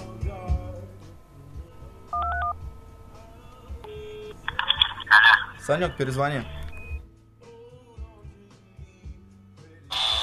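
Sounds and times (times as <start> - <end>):
low hum: 0.0 - 9.8
faint music: 0.0 - 10.2
phone keypad tones: 2.2 - 2.6, 3.9 - 7.0
electronic beeps: 3.9 - 7.0
speech: 5.7 - 6.6.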